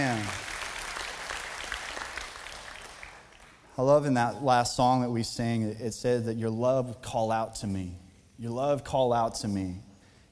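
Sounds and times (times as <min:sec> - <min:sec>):
crowd clapping: 0:00.0 - 0:03.7
speech: 0:03.8 - 0:09.9.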